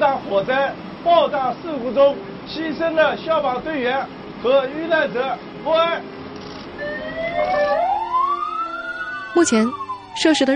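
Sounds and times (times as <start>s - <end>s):
speech: 0.0s - 6.2s, 9.3s - 10.5s
mourning sirens sounding across the city: 6.8s - 10.5s.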